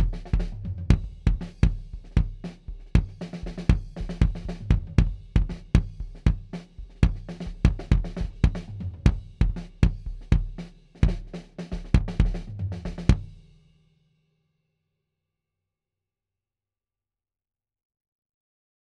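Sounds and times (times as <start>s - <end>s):
kick drum with closed head: 0.0s - 13.4s.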